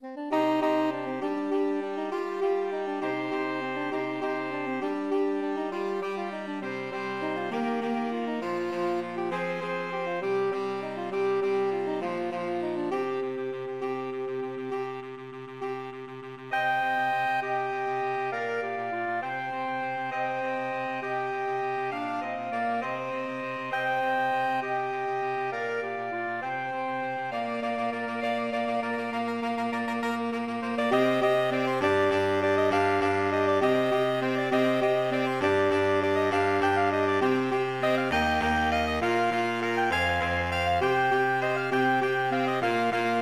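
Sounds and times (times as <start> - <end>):
pirate-themed saxophone quartet: 0.0 - 43.2.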